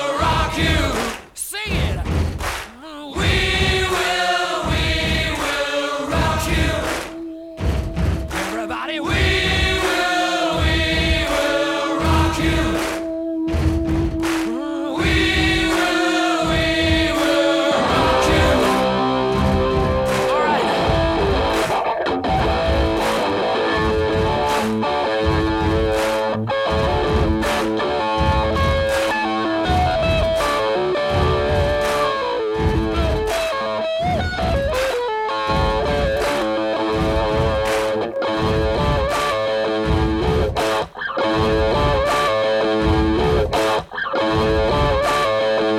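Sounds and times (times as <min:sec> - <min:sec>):
pounding drum hits: 0:00.0 - 0:45.7
distorted electric guitar in rock song recording: 0:17.8 - 0:45.7.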